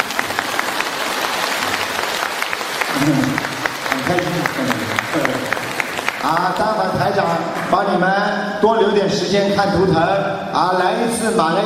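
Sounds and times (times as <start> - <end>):
crowd applauding: 0.0 - 8.0
speech: 3.0 - 3.5, 4.1 - 5.6, 6.2 - 11.6.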